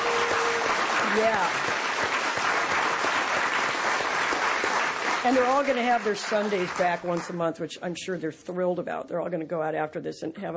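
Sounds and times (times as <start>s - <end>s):
audience applause: 0.0s - 7.4s
speech: 1.2s - 1.7s, 5.2s - 10.5s.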